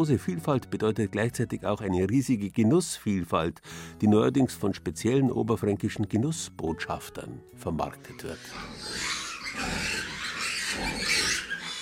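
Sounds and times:
speech: 0.0 - 10.1
two-week-old piglets squealing, fighting over the sow's teat: 8.0 - 11.8.

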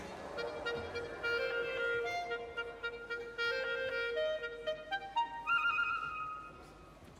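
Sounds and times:
clarinet playing: 0.0 - 6.9.

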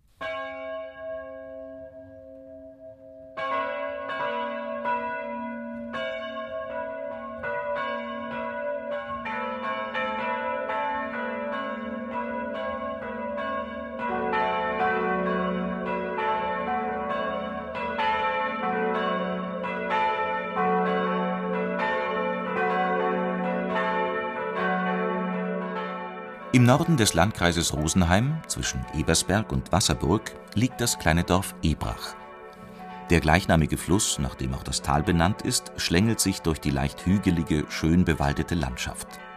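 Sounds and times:
church bells ringing the midday chime: 0.2 - 39.3
speech: 26.6 - 32.2, 33.1 - 39.3.

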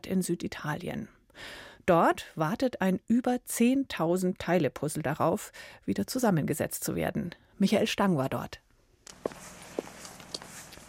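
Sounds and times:
speech: 0.1 - 8.6
footsteps on hard ground in the Pompeii ruins: 9.1 - 10.8.

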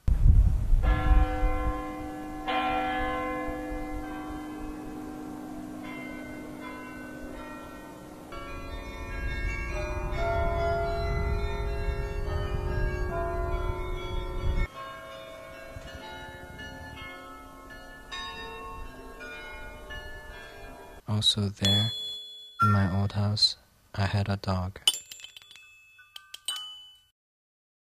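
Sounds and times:
church bells ringing: 0.8 - 21.0, 21.6 - 23.0
speech: 21.2 - 22.0, 22.8 - 24.9.

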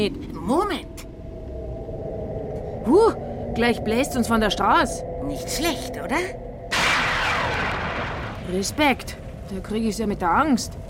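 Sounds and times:
speech: 0.0 - 0.9, 2.8 - 6.4, 8.5 - 10.8
thunder sound effect: 6.7 - 10.2.

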